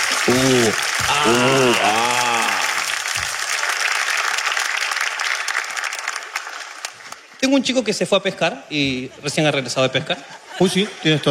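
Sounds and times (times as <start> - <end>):
audience applause: 0.0 - 7.3
speech: 0.2 - 2.1, 7.5 - 11.2
laughter: 0.2 - 2.8, 8.7 - 11.2.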